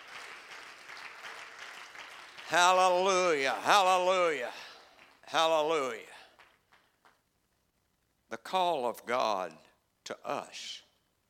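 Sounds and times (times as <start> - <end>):
men in a crowd applauding: 0.0 - 7.2
speech: 2.5 - 4.7, 5.3 - 6.1, 8.4 - 10.8.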